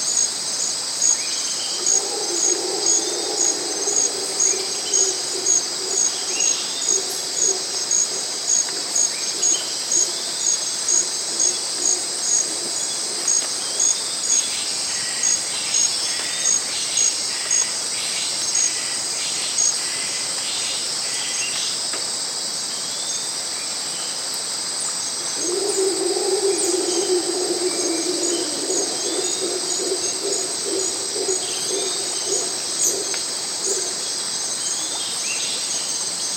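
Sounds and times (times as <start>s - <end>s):
exotic rainforest nature ambience: 0.0s - 36.3s.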